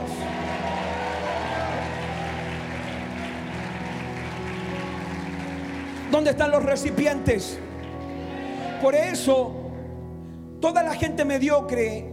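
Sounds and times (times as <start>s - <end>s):
crowd shouting: 0.0s - 3.5s
crowd clapping: 0.0s - 7.1s
speech: 6.1s - 7.7s, 8.8s - 9.6s, 10.6s - 12.1s.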